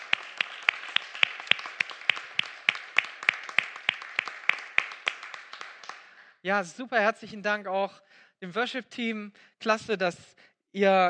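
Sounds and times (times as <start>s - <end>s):
crowd applauding: 0.0s - 6.3s
speech: 6.4s - 11.0s.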